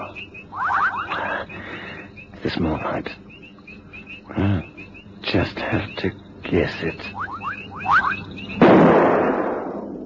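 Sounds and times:
faint rising chirp-like tones: 0.0 - 8.7
speech: 2.4 - 3.2, 4.3 - 4.7, 5.3 - 7.2
rifle shot fired at a lion: 8.6 - 9.9.

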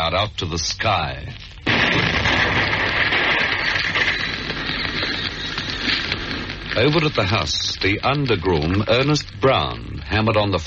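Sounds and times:
speech: 0.0 - 2.8, 6.8 - 10.6
car exploding with a roar: 1.6 - 7.5.

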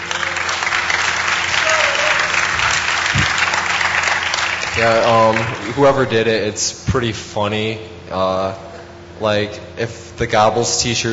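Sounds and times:
round of applause: 0.0 - 6.0
speech: 4.8 - 11.1.

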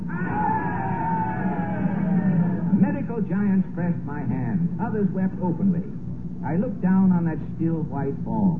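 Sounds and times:
gallery audience cheering: 0.1 - 2.8
speech: 3.3 - 8.5.

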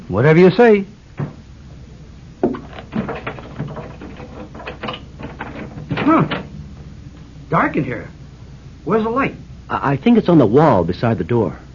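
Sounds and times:
speech: 0.1 - 0.9, 7.7 - 8.2, 8.8 - 11.6
key turning in a door lock: 2.7 - 6.5.

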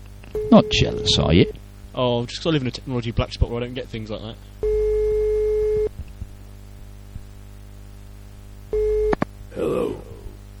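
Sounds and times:
telephone dial tone: 0.4 - 1.5, 4.6 - 5.9, 8.8 - 9.2
speech: 0.5 - 4.7.

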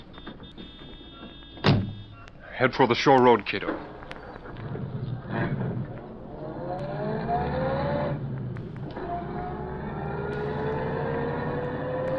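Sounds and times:
speech: 2.6 - 4.0
car pulling out from curb and driving off: 4.5 - 12.1.

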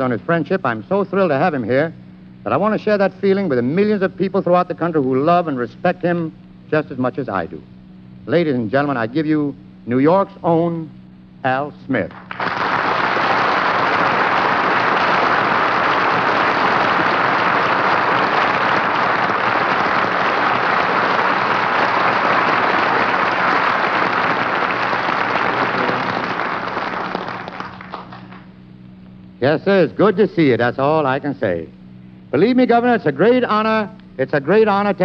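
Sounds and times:
speech: 0.0 - 12.4, 29.5 - 35.0
audience applause: 12.1 - 28.5.

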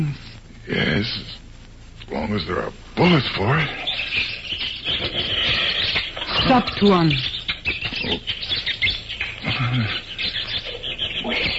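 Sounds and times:
speech: 0.0 - 1.4, 2.1 - 5.2, 6.4 - 7.3, 8.1 - 8.4, 9.6 - 10.0
agitated monkeys calling in jungle: 3.1 - 11.5.

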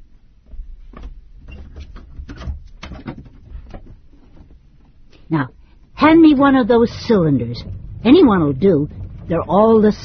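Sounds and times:
speech: 5.3 - 10.0
old trunk being opened: 6.0 - 10.0.

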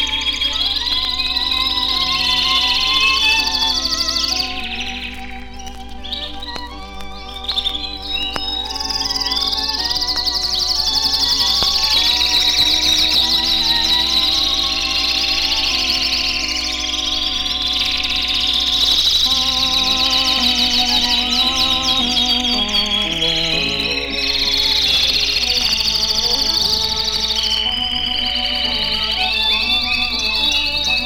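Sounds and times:
domestic canaries singing trills: 0.0 - 31.0
gentle sustained instrumental music: 0.0 - 31.0.

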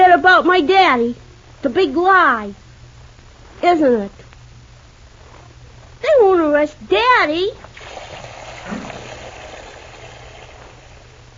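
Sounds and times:
speech: 0.2 - 2.6, 3.6 - 4.2, 6.0 - 7.7
tap water turned on full force: 7.7 - 11.2.

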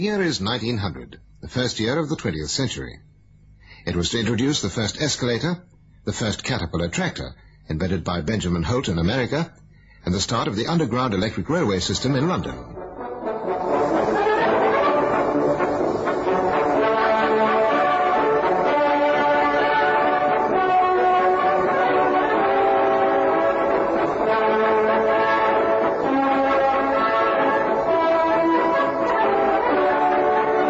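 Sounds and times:
speech: 0.0 - 3.1, 3.8 - 12.8
brass band playing a march, 1900 recording: 12.8 - 30.6.

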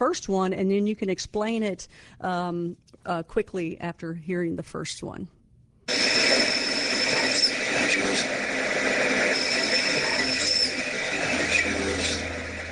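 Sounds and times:
speech: 0.0 - 5.4
spirit box app sweeping radio noise: 5.9 - 12.7.

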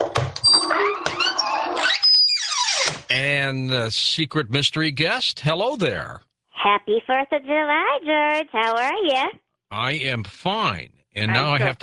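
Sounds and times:
creaking door opening: 0.0 - 3.1
speech: 3.2 - 11.8.

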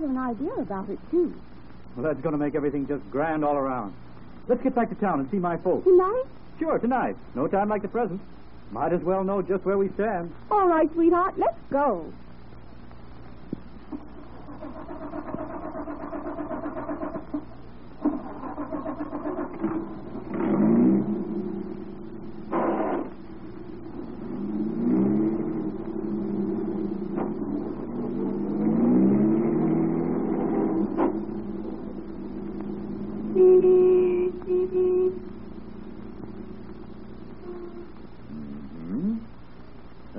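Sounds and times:
speech: 0.0 - 12.2
car engine pulling away and accelerating onto the highway: 13.9 - 39.2.

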